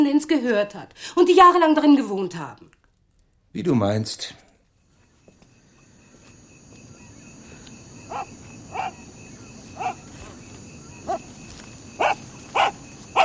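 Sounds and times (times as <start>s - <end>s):
speech: 0.0s - 2.8s, 3.6s - 4.4s
dog barking: 8.1s - 9.0s, 9.7s - 10.4s, 11.0s - 11.3s, 12.0s - 13.2s.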